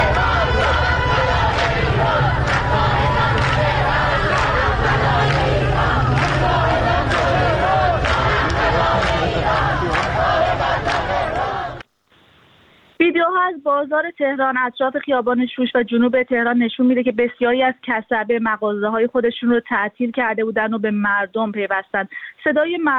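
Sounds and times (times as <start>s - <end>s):
babble: 0.0s - 11.8s
crowd of women chanting protest slogans in a metro station: 0.0s - 11.8s
speech: 13.8s - 22.9s.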